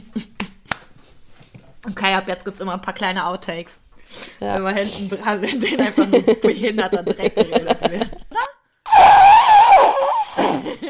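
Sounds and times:
speech: 1.9 - 8.2
laughter: 5.4 - 8.5, 10.4 - 10.8
mouth fart imitation: 8.9 - 10.8.

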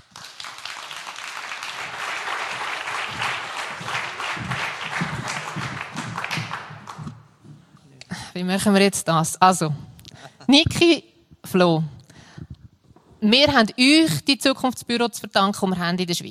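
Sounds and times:
audience applause: 0.0 - 7.3
speech: 8.4 - 9.9, 10.5 - 12.0, 13.2 - 16.3.

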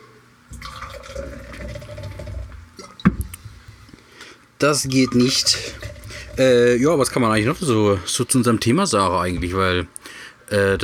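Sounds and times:
water pouring to rinse a glass: 0.5 - 3.1, 4.9 - 7.2
speech: 4.6 - 5.8, 6.4 - 10.8.

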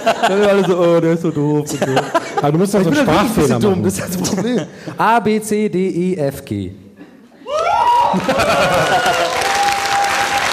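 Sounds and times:
laughter: 0.0 - 5.0, 8.0 - 9.6
speech: 0.0 - 6.8, 8.1 - 9.4
audience applause: 7.5 - 10.5.

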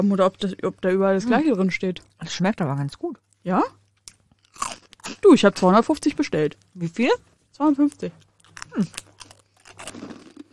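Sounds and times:
speech: 0.0 - 3.8, 4.6 - 9.1
crunchy snack chewed close to the microphone: 3.2 - 5.4, 6.5 - 10.5.

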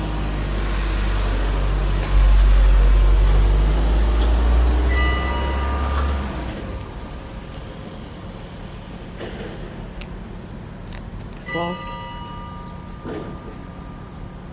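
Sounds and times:
car passing by: 0.0 - 8.0
faint ringing tones: 4.9 - 7.8, 11.4 - 14.5.

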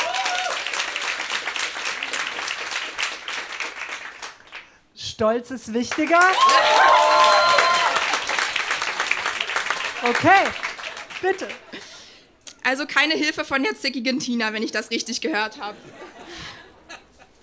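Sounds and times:
audience applause: 0.0 - 4.7, 6.0 - 11.8
speech: 5.2 - 7.5, 10.0 - 11.9, 12.7 - 16.0.

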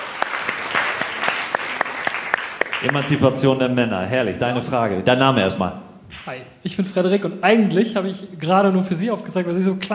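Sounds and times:
audience applause for a volunteer during a question session: 0.0 - 3.4
speech: 2.8 - 9.9.

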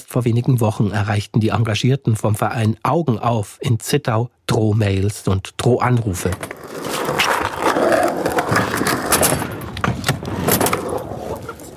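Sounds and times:
speech: 0.1 - 7.2
skateboards rolling in a skatepark: 6.0 - 11.7.

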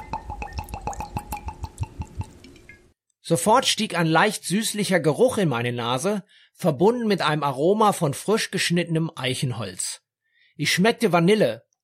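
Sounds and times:
bourbon poured into a heavy glass over ice: 0.0 - 2.9
speech: 3.3 - 10.0, 10.6 - 11.6.

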